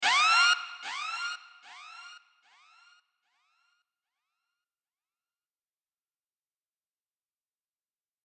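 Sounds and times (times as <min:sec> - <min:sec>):
siren: 0:00.0 - 0:03.8.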